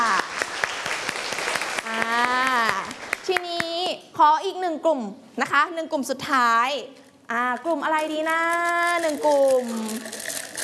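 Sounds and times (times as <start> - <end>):
classmates applauding: 0.0 - 3.4
speech: 4.2 - 10.3.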